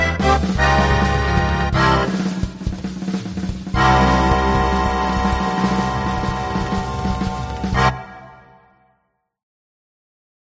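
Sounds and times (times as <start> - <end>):
accordion bass: 0.0 - 2.6, 3.7 - 8.4.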